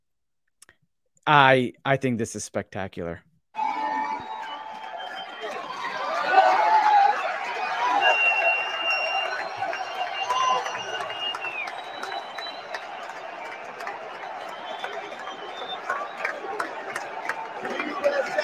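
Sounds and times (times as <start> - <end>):
speech: 1.3 - 3.3
scattered crowd whistles: 3.6 - 17.8
crowd roaring and cheering at UFC event: 3.6 - 18.4.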